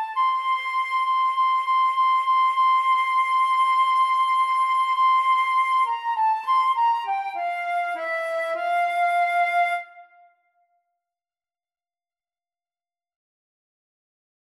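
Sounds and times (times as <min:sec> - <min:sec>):
flute duet: 0:00.0 - 0:10.4.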